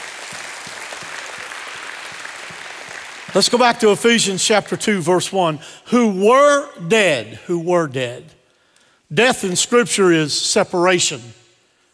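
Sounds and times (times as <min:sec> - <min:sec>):
audience hand clapping: 0:00.0 - 0:04.0
speech: 0:03.3 - 0:08.4, 0:09.1 - 0:11.4.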